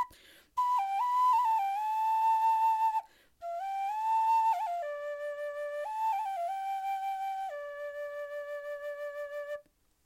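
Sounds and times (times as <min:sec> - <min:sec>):
Native American flute: 0:00.0 - 0:09.7.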